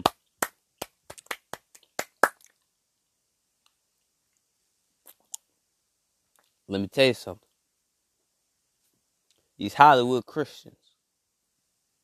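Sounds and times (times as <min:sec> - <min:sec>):
hand claps: 0:00.0 - 0:02.5
speech: 0:06.7 - 0:07.4, 0:09.6 - 0:10.8.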